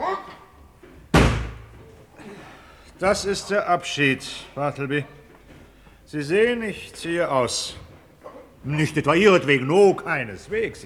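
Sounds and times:
heavy wardrobe tipped over during a move: 1.1 - 1.8
speech: 3.0 - 5.2, 6.1 - 7.9, 8.6 - 10.8.

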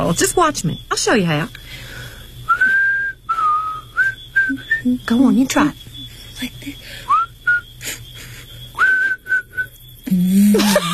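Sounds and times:
speech: 0.1 - 1.9, 4.8 - 5.8, 6.4 - 7.1, 10.1 - 10.9
person whistling: 2.5 - 4.9, 8.8 - 10.9.

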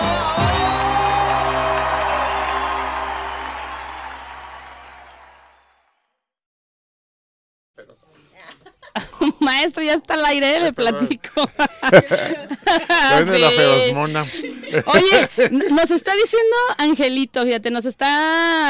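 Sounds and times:
audience applause: 0.5 - 5.9
laughter: 8.4 - 9.5, 10.8 - 16.1
speech: 9.5 - 18.6.

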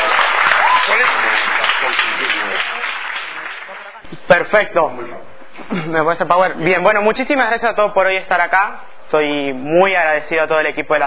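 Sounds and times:
audience applause at a motivational talk: 0.0 - 4.0
speech: 4.3 - 11.0.

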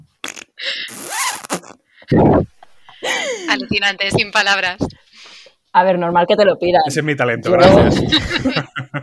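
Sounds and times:
voice imitating a Quechua camping tent zipper opening: 0.2 - 2.6
speech: 1.5 - 2.5, 3.3 - 5.0, 5.8 - 9.0
laughter: 7.7 - 9.0.

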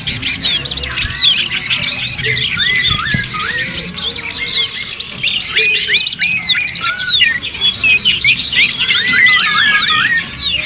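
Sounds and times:
birds twittering in a crowded chorus: 0.0 - 10.6
swooping whistled notes: 2.2 - 4.7, 5.4 - 10.6.

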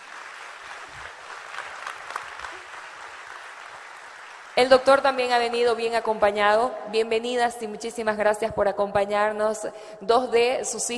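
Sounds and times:
conference audience applause welcoming guests: 0.0 - 5.0
speech: 4.6 - 10.9.

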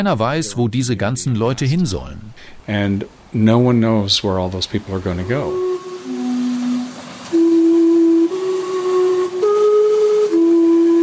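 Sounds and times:
speech: 0.0 - 5.7
steam-powered clock tower whistles in Gastown Vancouver playing a slow tune: 4.8 - 11.0.

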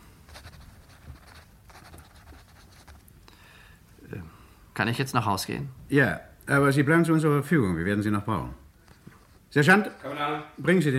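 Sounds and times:
pen scratching while signing a document: 0.3 - 3.0
speech: 4.8 - 8.6, 9.5 - 10.9.

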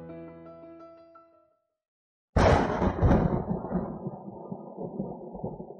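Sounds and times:
heavy rain: 2.4 - 5.7
thunder: 2.4 - 5.7.

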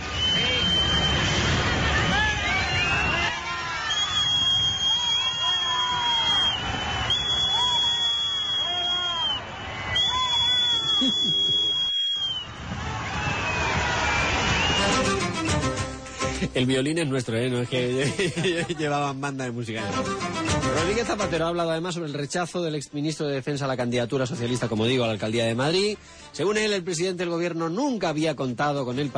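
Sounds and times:
kettle-like whistling: 0.0 - 1.6, 2.6 - 12.6, 13.2 - 15.6
crowd booing: 0.0 - 15.7
laughter: 10.9 - 11.8, 17.8 - 19.1
speech: 16.6 - 29.1.

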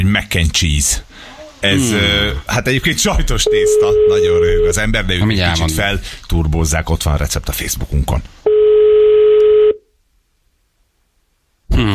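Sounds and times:
speech: 0.0 - 8.4
telephone dial tone as a listener is called: 8.5 - 9.8.

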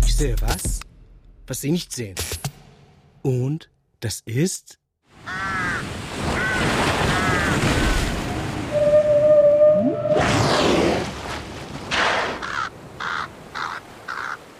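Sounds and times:
speech: 0.2 - 0.9, 1.5 - 2.4, 3.2 - 4.8
crow cawing: 5.2 - 8.0, 12.3 - 14.5
surf: 5.2 - 14.5
whale call: 6.3 - 11.0.

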